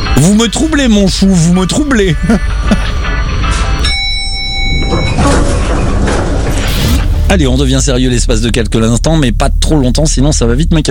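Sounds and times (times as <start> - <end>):
speech: 0.2 - 3.0, 7.3 - 10.8
elevator bell ding: 3.8 - 6.4
rumbling whooshing background of a lift going up: 4.6 - 10.8.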